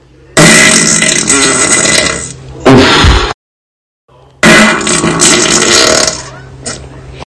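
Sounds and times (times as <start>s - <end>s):
fart: 0.4s - 3.4s, 4.4s - 6.8s.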